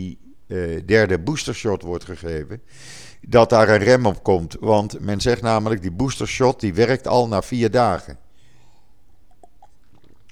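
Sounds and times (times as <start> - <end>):
speech: 0.0 - 8.2
person taking a sip of water and swallowing: 8.3 - 10.3.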